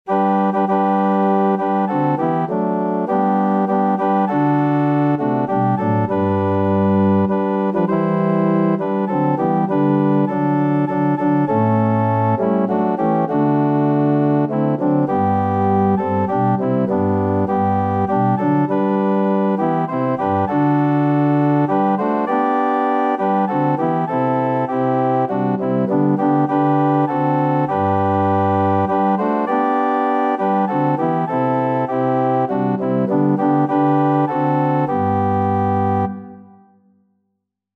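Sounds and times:
organ: 0.1 - 36.6.

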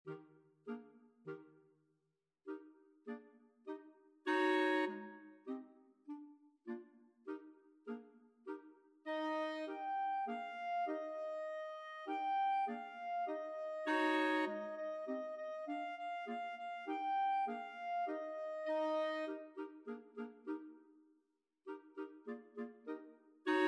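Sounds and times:
clarinet choir playing: 4.3 - 5.6, 9.1 - 20.6, 22.0 - 23.6.

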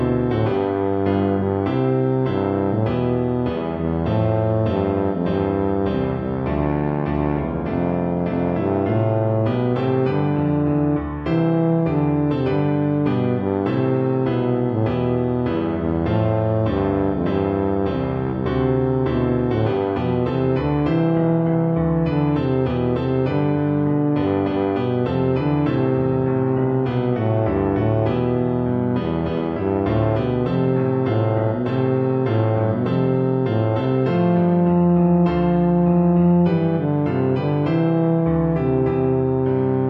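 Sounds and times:
tuba playing a national anthem: 0.0 - 39.8.

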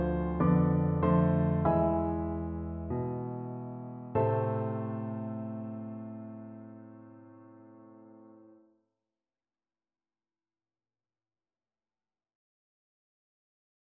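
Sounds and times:
piano duet: 0.0 - 8.6.

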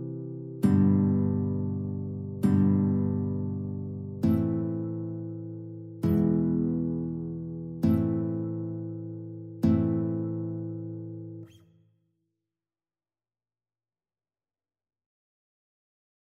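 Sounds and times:
guitar playing in a guitar-flute duet: 0.0 - 11.7.

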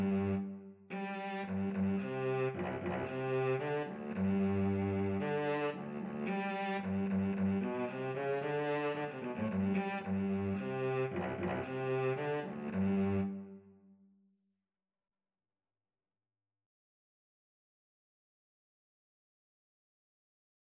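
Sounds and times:
violin and cello duet: 0.0 - 13.6.

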